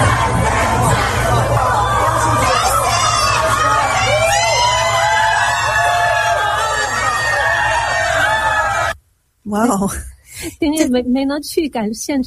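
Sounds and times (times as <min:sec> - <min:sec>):
crowd screaming and cheering at rally: 0:00.0 - 0:09.0
speech: 0:09.6 - 0:12.2.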